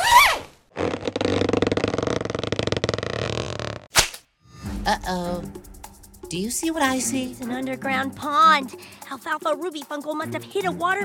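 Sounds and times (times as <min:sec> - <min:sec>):
pouch zipper unzipping: 0:00.0 - 0:03.9
speech: 0:04.9 - 0:05.6, 0:06.3 - 0:11.0.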